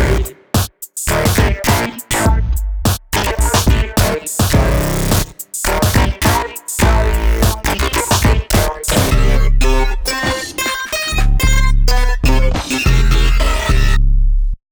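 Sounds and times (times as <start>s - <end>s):
neuro bass: 0.0s - 0.4s, 1.0s - 10.4s, 11.1s - 14.6s.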